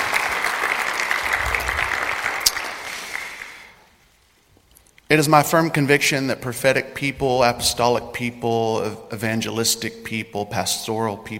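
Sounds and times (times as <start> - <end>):
audience applause welcoming guests at a talk: 0.0 - 3.8
sharp claps: 0.0 - 3.8
speech: 5.1 - 11.3.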